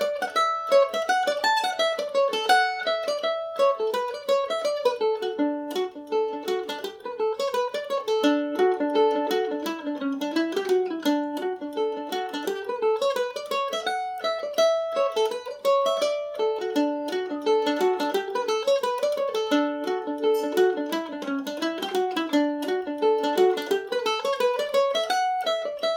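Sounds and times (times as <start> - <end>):
Irish mandolin melody in D major: 0.0 - 25.9.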